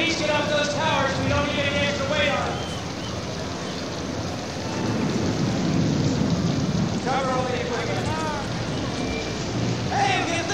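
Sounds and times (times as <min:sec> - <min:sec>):
heavy rain during a storm: 0:00.0 - 0:10.5
rolling thunder during a storm: 0:00.0 - 0:10.5.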